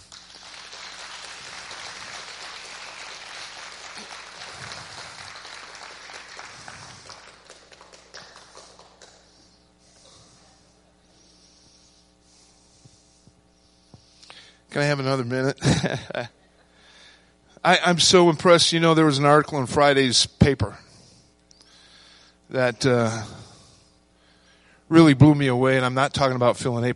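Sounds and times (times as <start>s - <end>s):
audience applauding: 0.0s - 9.4s
speech: 14.8s - 16.4s, 17.6s - 20.8s, 22.5s - 23.4s, 24.9s - 26.9s.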